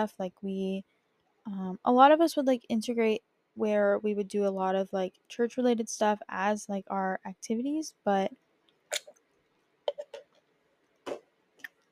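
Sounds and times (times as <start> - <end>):
speech: 0.0 - 9.1
person drinking water: 8.9 - 9.2, 9.9 - 10.3.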